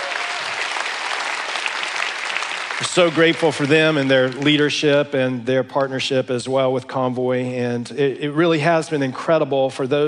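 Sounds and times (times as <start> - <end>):
church audience applause honoring their pastors: 0.0 - 5.0
speech: 2.8 - 10.0.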